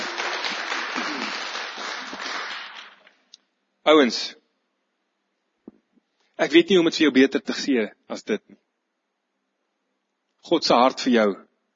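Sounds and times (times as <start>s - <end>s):
applause: 0.0s - 3.2s
speech: 3.9s - 4.4s, 6.4s - 8.6s, 10.4s - 11.5s.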